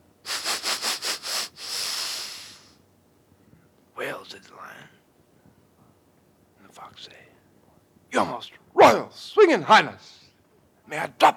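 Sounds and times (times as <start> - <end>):
voice imitating sniffing: 0.2 - 2.8
speech: 4.0 - 5.0, 6.8 - 7.4, 8.1 - 10.1, 10.9 - 11.3.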